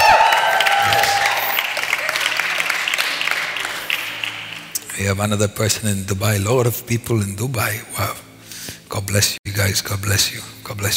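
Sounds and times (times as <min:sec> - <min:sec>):
excited shouts and whoops: 0:00.0 - 0:02.4
audience applauding: 0:00.0 - 0:04.9
speech: 0:05.0 - 0:08.2, 0:09.0 - 0:10.9.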